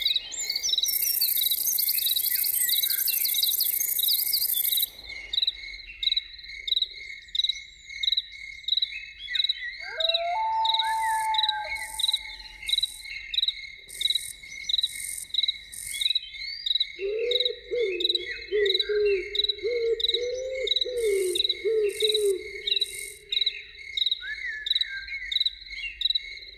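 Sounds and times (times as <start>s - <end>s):
crickets chirping: 0.0s - 8.9s, 9.8s - 26.1s
loon wail and tremolo: 9.8s - 13.1s, 17.0s - 23.5s.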